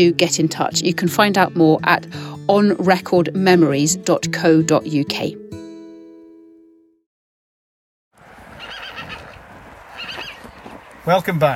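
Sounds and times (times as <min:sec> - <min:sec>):
speech: 0:00.0 - 0:05.4, 0:11.1 - 0:11.5
pony whinnying in a field: 0:08.6 - 0:10.4.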